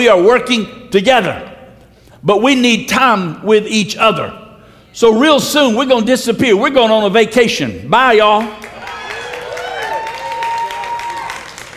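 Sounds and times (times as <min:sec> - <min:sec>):
speech: 0:00.0 - 0:01.5, 0:02.2 - 0:04.4, 0:05.0 - 0:08.6
audience applause: 0:08.6 - 0:11.7.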